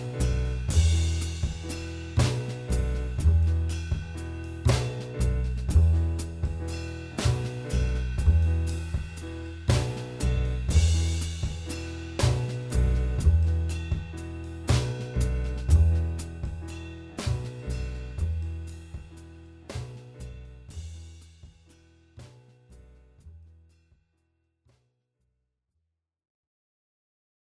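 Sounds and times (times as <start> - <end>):
improvised backing music: 0.0 - 20.8.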